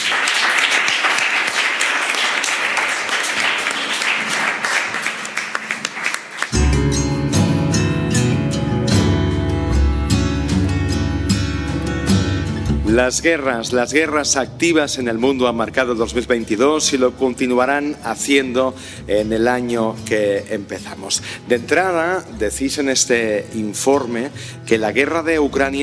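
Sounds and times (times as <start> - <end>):
audience applauding: 0.0 - 6.8
music bed with a low, sustained bass: 6.6 - 13.4
speech: 13.0 - 25.8.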